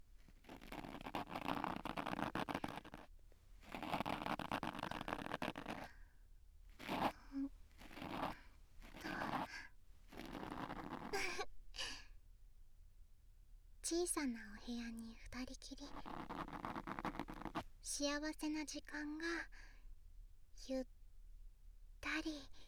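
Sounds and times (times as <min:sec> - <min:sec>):
ear pick scraping inside an ear: 0:00.0 - 0:05.9, 0:06.7 - 0:11.3, 0:15.9 - 0:17.7
speech: 0:13.9 - 0:17.1, 0:17.8 - 0:19.7, 0:20.6 - 0:20.9, 0:22.2 - 0:22.6.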